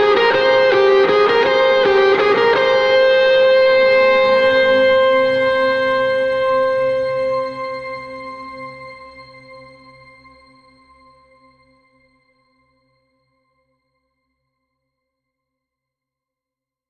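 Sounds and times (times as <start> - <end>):
isolated guitar: 0.0 - 8.9.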